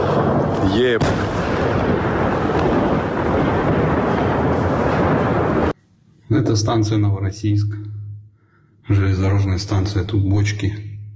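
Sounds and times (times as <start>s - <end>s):
explosion from a drone strike: 0.0s - 5.8s
speech: 0.8s - 1.3s, 6.4s - 7.8s, 8.9s - 10.9s.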